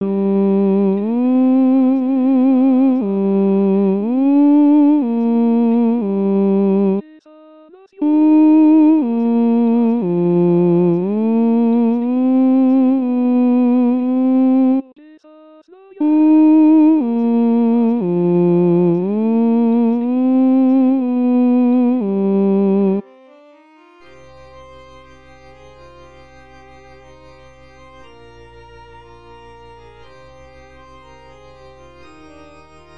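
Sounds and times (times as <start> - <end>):
tenor singing: 0.0 - 23.0.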